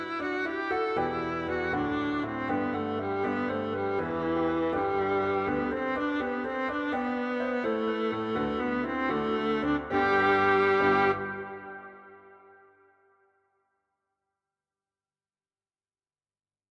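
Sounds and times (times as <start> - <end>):
easy viola playing: 0.0 - 12.8.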